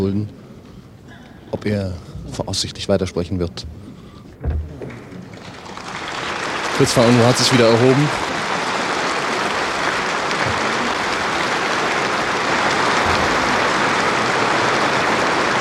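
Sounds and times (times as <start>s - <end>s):
speech: 0.0s - 0.4s, 1.5s - 3.8s, 6.8s - 8.2s
applause: 4.9s - 15.6s.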